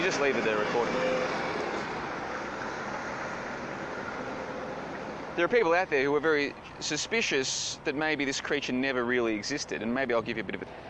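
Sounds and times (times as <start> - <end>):
truck going past: 0.0 - 6.5
speech: 0.1 - 1.6, 5.4 - 10.8.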